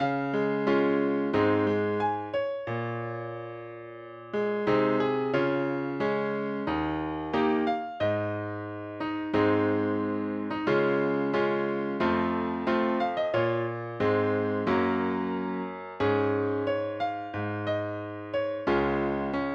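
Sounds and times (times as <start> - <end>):
piano: 0.0 - 19.5.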